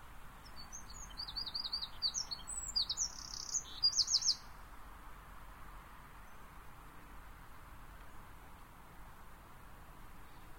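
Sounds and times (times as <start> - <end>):
steady background noise: 0.0 - 10.5
Eurasian wren song: 0.4 - 4.6.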